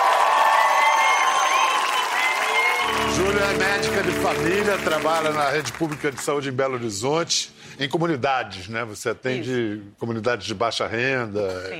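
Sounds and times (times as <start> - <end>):
audience applause: 0.0 - 6.8
speech: 3.3 - 11.7.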